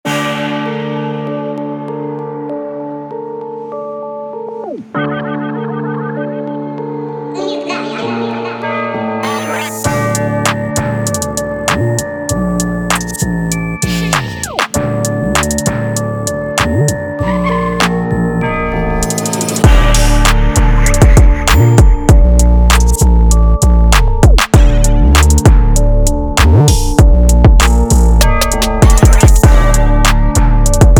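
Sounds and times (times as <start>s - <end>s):
rap beat in D minor: 7.4s - 18.4s, 19.0s - 30.9s.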